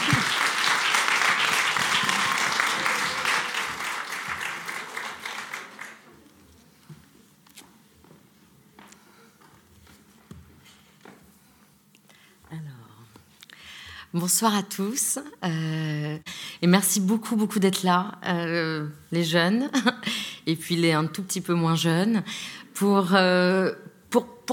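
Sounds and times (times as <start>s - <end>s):
audience applause: 0.0s - 6.2s
speech: 14.2s - 24.5s.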